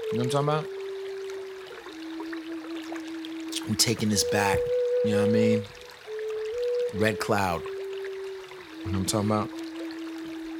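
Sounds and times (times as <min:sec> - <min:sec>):
river water flowing: 0:00.0 - 0:10.5
sustained low tone: 0:00.0 - 0:10.5
speech: 0:00.1 - 0:00.8, 0:03.6 - 0:05.8, 0:06.9 - 0:07.7, 0:08.8 - 0:09.6.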